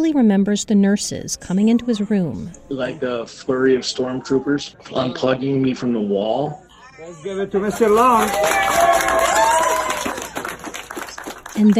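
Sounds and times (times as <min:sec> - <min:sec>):
speech: 0:00.0 - 0:09.4, 0:11.6 - 0:11.7
hospital staff cheering and clapping in an ICU hallway: 0:07.6 - 0:11.7
person whooping: 0:08.0 - 0:10.5.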